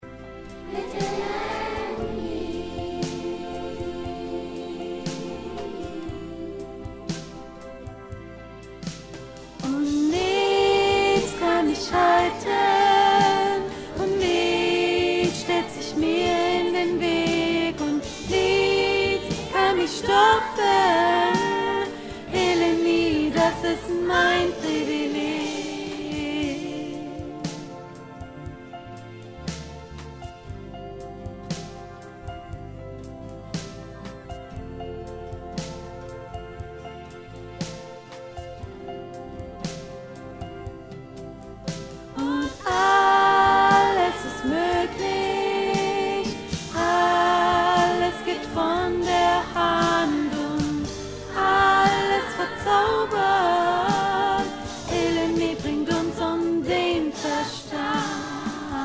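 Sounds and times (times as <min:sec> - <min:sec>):
medium choir voice part: 0:00.5 - 0:07.8, 0:09.6 - 0:28.1, 0:42.2 - 0:58.8.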